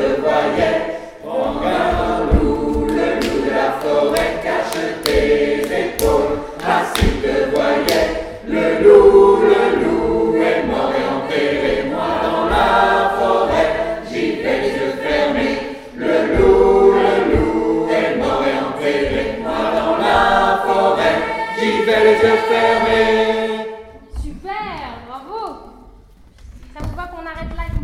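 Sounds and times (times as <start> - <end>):
stage chant: 0.0 - 24.0.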